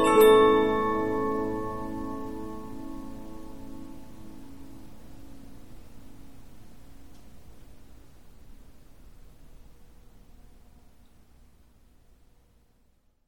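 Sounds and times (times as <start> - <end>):
Polyphon 15-inch disc music box playing: 0.0 - 3.3.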